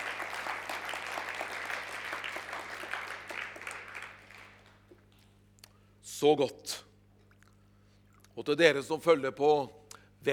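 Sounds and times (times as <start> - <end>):
audience applause: 0.0 - 4.8
speech: 6.2 - 6.8, 8.4 - 10.3.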